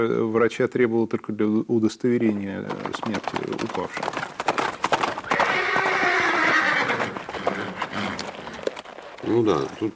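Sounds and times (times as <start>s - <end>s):
speech: 0.0s - 4.4s, 9.3s - 9.9s
hooves clopping: 2.2s - 9.9s
horse whinnying: 2.8s - 9.9s.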